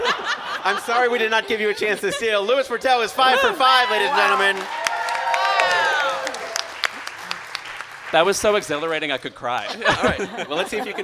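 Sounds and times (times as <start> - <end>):
laughter: 0.0 - 4.6, 9.2 - 11.0
speech: 0.7 - 4.8, 8.1 - 11.0
crowd applause and cheering: 3.3 - 9.4.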